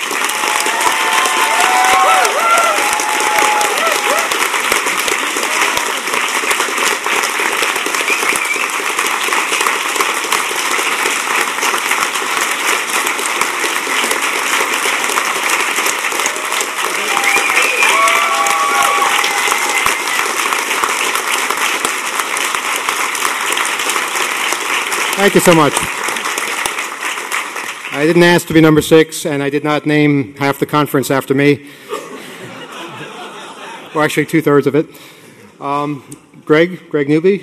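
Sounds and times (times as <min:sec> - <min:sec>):
audience applause: 0:00.0 - 0:28.8, 0:32.4 - 0:34.6
faint cheers and voices: 0:00.3 - 0:04.4, 0:16.2 - 0:20.4
speech: 0:25.2 - 0:25.9, 0:28.0 - 0:31.8, 0:34.0 - 0:37.4
laughter: 0:31.8 - 0:34.4.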